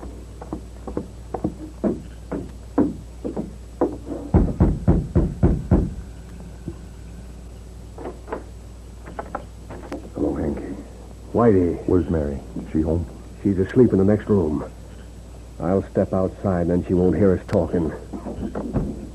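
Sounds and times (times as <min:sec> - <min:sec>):
knocking on a wooden door: 0:00.5 - 0:06.0
speech: 0:11.4 - 0:14.8, 0:15.6 - 0:19.0.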